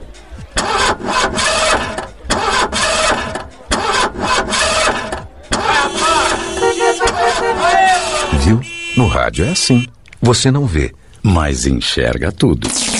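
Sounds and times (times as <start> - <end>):
nearly 300-horsepower sports car engine starting and revving: 0.5 - 8.3
speech: 8.5 - 12.9.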